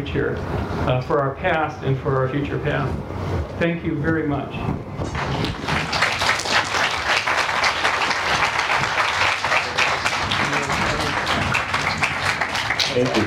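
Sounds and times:
speech: 0.0 - 5.7, 13.0 - 13.2
audience applause after a talk at Burning Man: 5.0 - 13.2.

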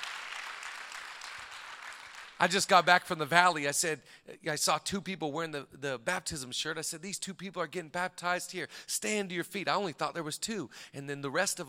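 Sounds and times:
audience applause: 0.0 - 2.4
speech: 2.4 - 11.6.

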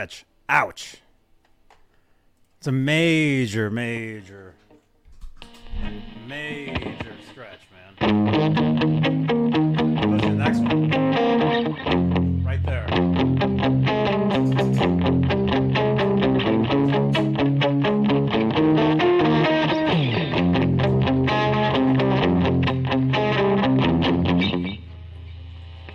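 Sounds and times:
speech: 0.0 - 1.0, 2.6 - 4.6
overdriven electric guitar chords through a tremolo effect: 5.4 - 25.9.

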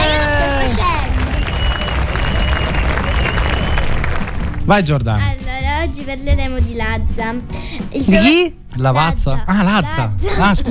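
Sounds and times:
applause: 0.0 - 4.9
speech: 4.7 - 10.6.

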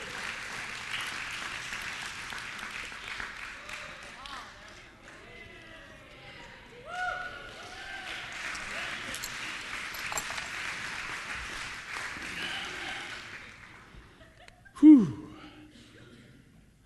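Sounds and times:
audience applause: 0.0 - 5.3, 7.4 - 14.0
voices and cheers: 6.6 - 9.2.

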